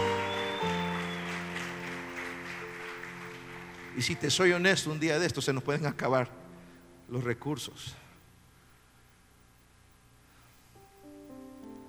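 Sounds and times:
audience clapping hands: 0.0s - 5.0s
speech: 4.0s - 6.4s, 7.1s - 8.0s.

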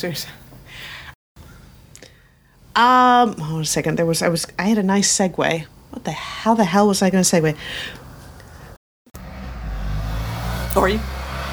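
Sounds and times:
speech: 0.0s - 1.0s, 2.8s - 8.0s, 10.8s - 11.5s
motorcycle passing by outside: 9.2s - 11.5s.

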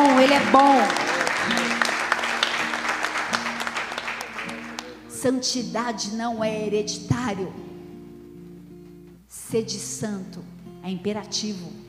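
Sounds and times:
audience applause: 0.0s - 5.1s
speech: 0.2s - 1.6s, 5.2s - 7.7s, 9.5s - 11.8s.

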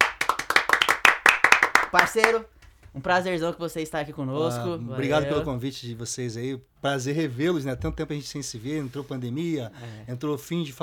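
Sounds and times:
hand clapping applause: 0.0s - 2.5s
speech: 1.9s - 10.8s.

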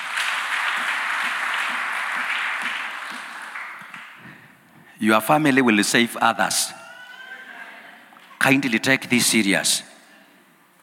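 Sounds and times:
audience clapping: 0.0s - 4.5s
speech: 5.0s - 6.8s, 8.4s - 9.9s.

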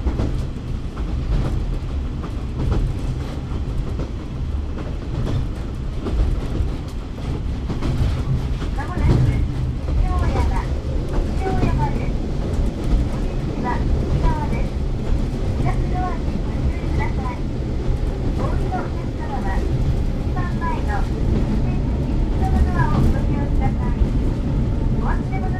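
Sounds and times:
JR Kyushu Ibusukimakurazaki Line train carriage rumble and rattle: 0.0s - 25.5s
faint voices of passengers: 8.6s - 17.6s, 18.3s - 24.2s, 24.9s - 25.5s.

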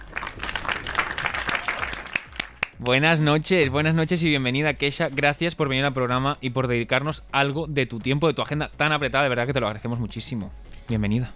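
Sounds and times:
audience applause: 0.0s - 2.8s
speech: 2.8s - 11.3s.

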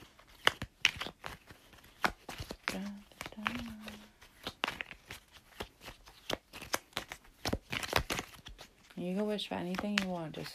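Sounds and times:
playing cards shuffled: 0.0s - 10.5s
speech: 9.0s - 10.5s.

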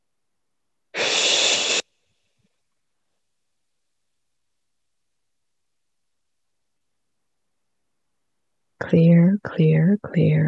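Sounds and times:
deep breath during a guided meditation: 1.0s - 1.8s
speech: 8.8s - 10.4s.

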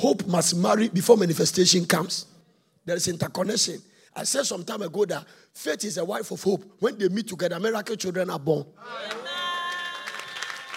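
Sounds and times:
speech: 0.0s - 9.3s
audience clapping: 8.9s - 10.7s.

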